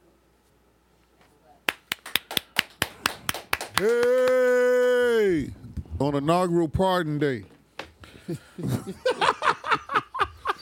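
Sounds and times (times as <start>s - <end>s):
hand claps sound effect: 1.7s - 4.9s
speech: 3.8s - 4.3s, 5.3s - 7.5s, 8.3s - 9.3s
laughter: 8.1s - 10.6s.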